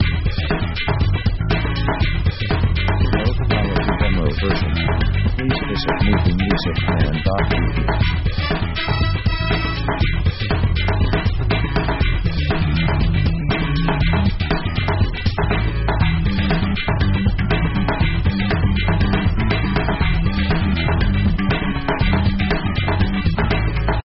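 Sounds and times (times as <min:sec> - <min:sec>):
funk music: 0:00.0 - 0:24.0.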